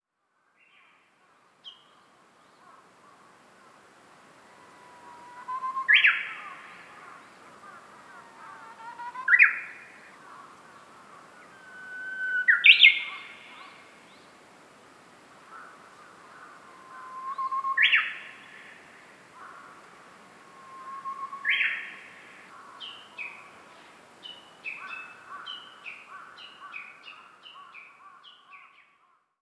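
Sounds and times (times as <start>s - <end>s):
bird: 4.5s - 14.4s, 15.5s - 19.8s, 20.4s - 29.2s.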